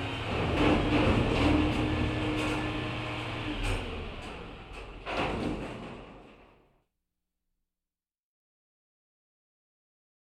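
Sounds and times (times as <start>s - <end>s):
garbage truck loading in a big city: 0.0s - 6.6s.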